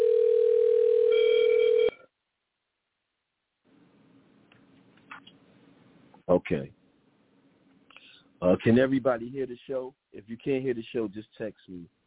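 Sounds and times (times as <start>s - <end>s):
studio telephone dial tone: 0.0s - 2.0s
speech: 6.4s - 6.8s, 8.4s - 12.0s.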